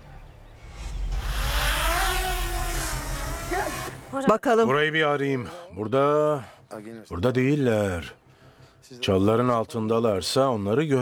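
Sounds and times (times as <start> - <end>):
drone flying: 0.6 - 4.2
speech: 4.2 - 8.2, 8.8 - 11.0.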